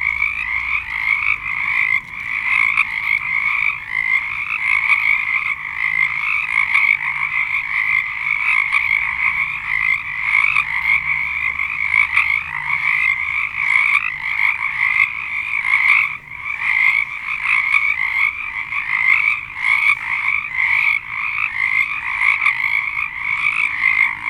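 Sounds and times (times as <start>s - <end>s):
frog chorus: 0.0s - 24.2s.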